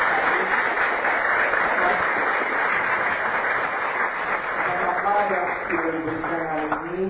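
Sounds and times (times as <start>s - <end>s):
audience applause at a seminar in a hotel: 0.0s - 7.0s.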